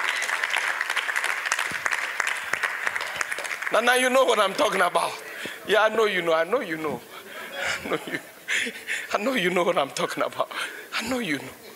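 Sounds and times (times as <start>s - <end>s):
crowd clapping: 0.0s - 4.8s
speech: 3.7s - 7.1s, 7.8s - 11.6s
laughter: 7.3s - 9.1s.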